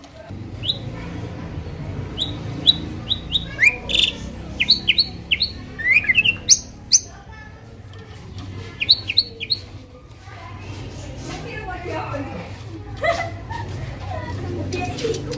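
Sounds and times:
Asian pied starling song with whistles, rattles and chatters: 0:00.4 - 0:10.0
laughter: 0:11.1 - 0:15.3.

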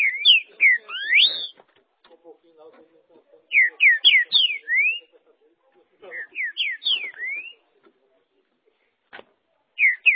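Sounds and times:
green-winged saltator whistling song: 0:00.0 - 0:01.6, 0:03.5 - 0:05.1, 0:06.1 - 0:07.6, 0:09.8 - 0:10.1.

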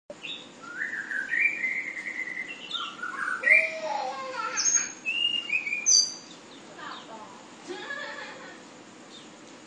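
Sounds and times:
flowerpecker whistled song in sulingan style: 0:00.2 - 0:06.5.

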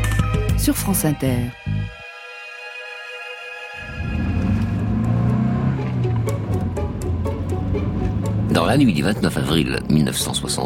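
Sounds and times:
speech: 0:00.7 - 0:02.0, 0:08.6 - 0:10.6
car engine drone along the left bank of the Seine in Paris: 0:03.7 - 0:10.6
road rumble: 0:03.8 - 0:10.6.

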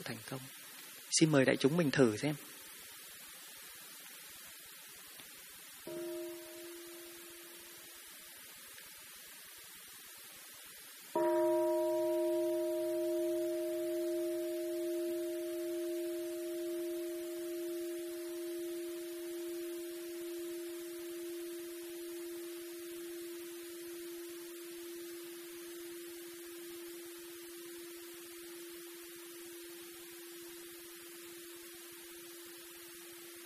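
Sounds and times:
speech: 0:00.0 - 0:02.5
meditation bell ringing: 0:05.9 - 0:08.2, 0:11.2 - 0:33.4.

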